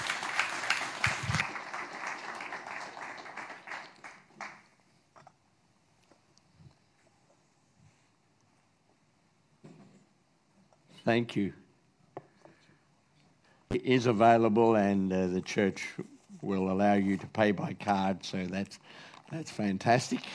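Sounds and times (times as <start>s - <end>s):
audience applause welcoming a speaker in a church: 0.0s - 4.7s
speech: 11.1s - 11.6s, 13.8s - 20.3s.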